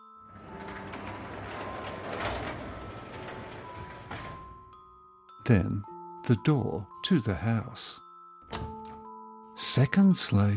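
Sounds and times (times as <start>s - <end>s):
garage door opening with grinding gears and chain: 0.0s - 4.9s
speech: 5.5s - 8.6s, 9.7s - 10.5s.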